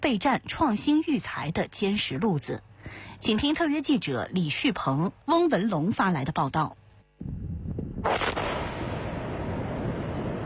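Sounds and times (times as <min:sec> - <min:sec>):
speech: 0:00.1 - 0:07.4, 0:08.0 - 0:08.6
missile hitting target and exploding: 0:08.0 - 0:10.4.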